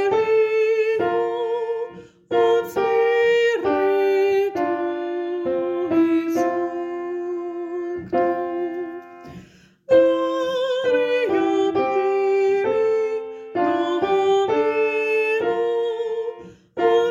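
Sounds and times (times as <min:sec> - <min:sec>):
soprano singing: 0:00.0 - 0:17.0.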